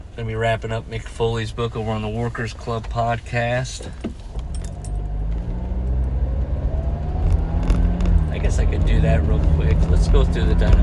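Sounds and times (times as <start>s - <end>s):
car driving on the road: 0.0s - 10.8s
speech: 0.2s - 4.1s, 8.4s - 10.8s
rising tonal whine: 5.1s - 9.4s.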